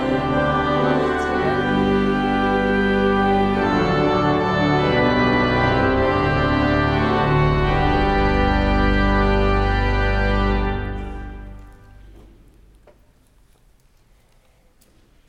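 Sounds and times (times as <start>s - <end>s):
hymn: 0.0s - 12.2s.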